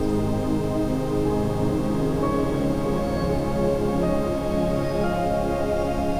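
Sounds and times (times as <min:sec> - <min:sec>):
ambient sound: 0:00.2 - 0:06.1
gentle Rife frequency waves: 0:01.3 - 0:06.1.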